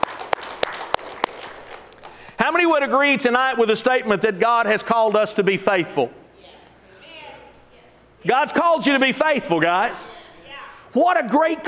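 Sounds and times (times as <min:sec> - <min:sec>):
audience hand clapping: 0:00.0 - 0:02.4
speech: 0:02.5 - 0:06.2, 0:08.2 - 0:10.2, 0:10.9 - 0:11.6.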